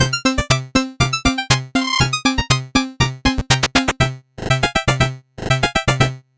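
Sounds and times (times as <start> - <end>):
slow 8-bit jingle: 0.0 - 6.2.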